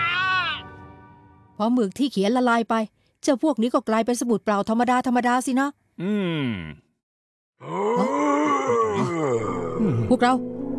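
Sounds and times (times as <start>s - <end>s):
speech: 1.6s - 6.8s, 7.6s - 10.6s
giant rock worm groaning: 7.6s - 10.2s.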